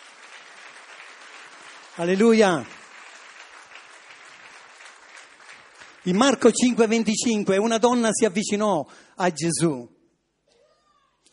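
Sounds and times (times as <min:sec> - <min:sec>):
audience applauding: 0:00.0 - 0:07.3
speech: 0:02.0 - 0:02.8, 0:06.0 - 0:10.0.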